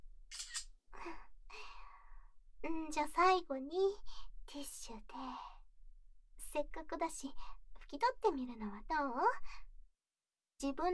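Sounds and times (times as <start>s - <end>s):
camera shutter clicks: 0.3s - 0.6s
speech: 2.6s - 5.5s, 6.5s - 9.6s, 10.6s - 10.9s.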